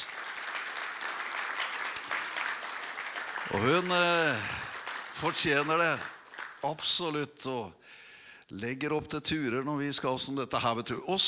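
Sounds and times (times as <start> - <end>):
audience clapping: 0.0 - 7.2
speech: 3.5 - 4.6, 5.2 - 11.2.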